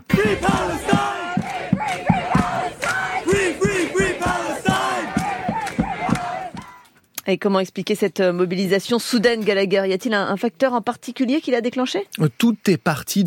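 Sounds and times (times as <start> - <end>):
crowd chanting a slogan at protest: 0.0 - 6.9
speech: 7.3 - 13.2.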